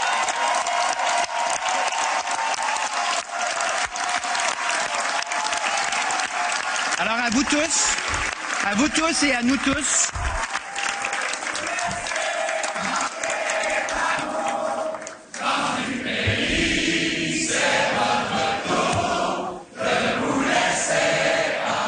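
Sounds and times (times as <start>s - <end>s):
cheering and applause: 0.0s - 15.7s
speech: 7.0s - 10.3s
large crowd singing an unofficial anthem: 11.7s - 21.8s.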